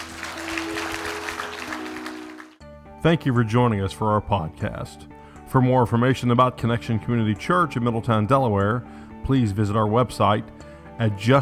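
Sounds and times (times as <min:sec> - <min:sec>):
audience applause: 0:00.0 - 0:02.6
speech: 0:03.0 - 0:11.4.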